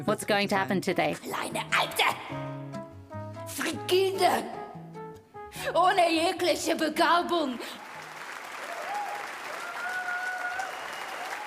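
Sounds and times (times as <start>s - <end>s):
speech: 0.0s - 2.5s, 3.6s - 4.6s, 5.5s - 7.8s
audience applause: 7.7s - 11.4s.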